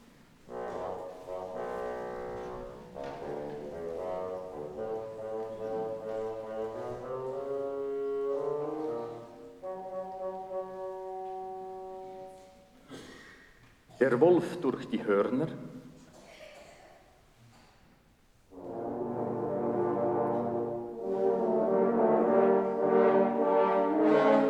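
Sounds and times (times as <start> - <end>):
bassoon melody: 0.4 - 12.6, 18.5 - 24.4
speech: 14.0 - 15.7.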